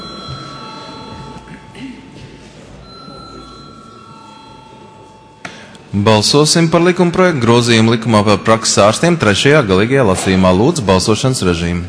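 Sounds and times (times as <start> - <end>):
parliament voting bell ringing: 0.0 - 2.1, 2.8 - 7.9
murmur of voices: 0.0 - 11.8
speech: 5.9 - 11.8.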